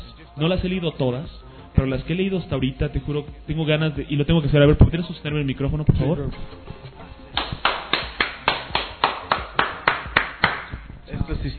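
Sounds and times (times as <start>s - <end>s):
speech: 0.4s - 6.8s
one person clapping hands: 7.3s - 10.8s.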